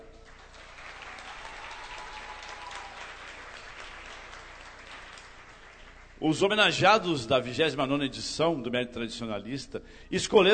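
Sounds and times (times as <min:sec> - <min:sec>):
audience applause: 0:00.2 - 0:06.2
speech: 0:06.2 - 0:10.5.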